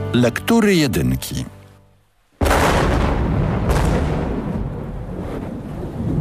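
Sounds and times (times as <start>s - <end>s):
speech: 0.1s - 1.6s
thunderclap sound effect: 2.4s - 6.1s.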